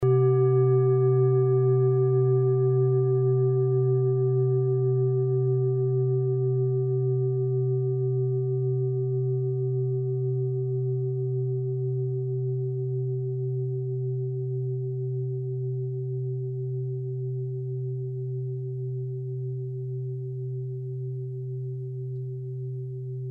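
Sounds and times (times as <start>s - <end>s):
set of singing bowls: 0.0s - 23.2s.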